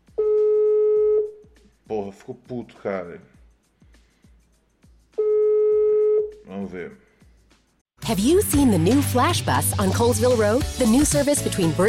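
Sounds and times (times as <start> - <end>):
telephone line tone on an unanswered call: 0.2 - 1.3, 5.2 - 6.3
speech: 1.9 - 3.4, 6.5 - 7.1, 8.1 - 11.8.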